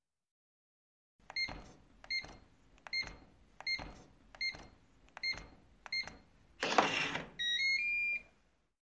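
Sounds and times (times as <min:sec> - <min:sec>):
door keypad beeps: 0:01.3 - 0:06.3, 0:06.9 - 0:08.3.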